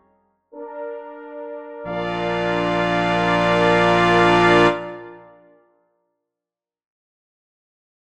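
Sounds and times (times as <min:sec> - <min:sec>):
fanfare: 0:00.6 - 0:05.6.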